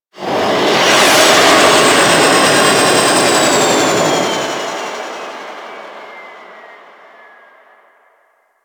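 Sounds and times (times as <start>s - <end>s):
spaceship fly-by: 0.2s - 8.2s.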